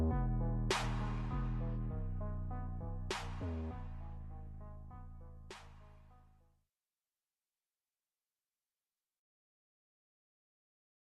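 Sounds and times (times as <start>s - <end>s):
slowed instrumental music: 0.0s - 6.3s.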